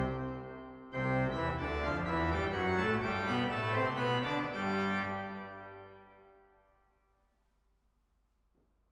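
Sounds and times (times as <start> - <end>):
organ recorded with Neumann cardioid microphone: 0.0 - 6.2.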